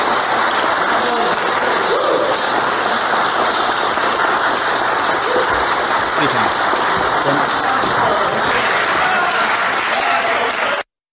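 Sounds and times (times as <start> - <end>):
audience cheering: 0.0 - 10.9.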